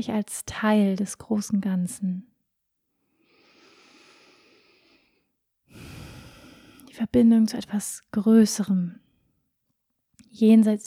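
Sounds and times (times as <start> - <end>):
speech: 0.0 - 2.3, 7.0 - 9.0, 10.3 - 10.8
slow meditative breathing: 3.1 - 6.9.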